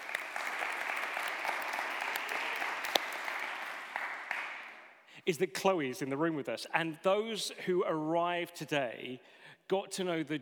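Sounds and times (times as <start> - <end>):
applause: 0.0 - 5.0
speech: 5.3 - 10.4.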